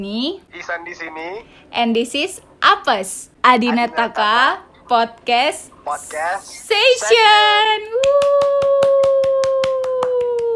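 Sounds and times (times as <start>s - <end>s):
speech: 0.0s - 8.9s
hands clapping: 7.9s - 10.5s.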